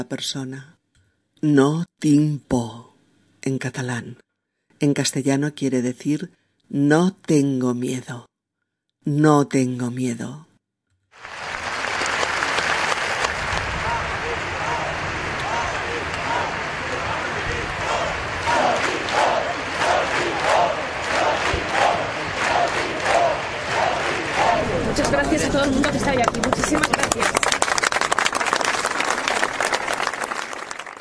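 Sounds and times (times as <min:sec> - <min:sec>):
speech: 0:00.0 - 0:00.8, 0:01.4 - 0:02.8, 0:03.4 - 0:04.2, 0:04.8 - 0:08.3, 0:09.0 - 0:10.5, 0:25.0 - 0:27.6
crowd applauding: 0:11.2 - 0:31.0
crowd shouting in unison: 0:12.8 - 0:25.4.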